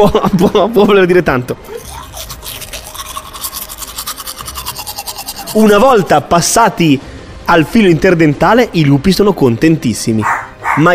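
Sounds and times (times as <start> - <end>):
speech: 0.0 - 2.3, 5.5 - 10.9
teeth being brushed: 1.7 - 6.2.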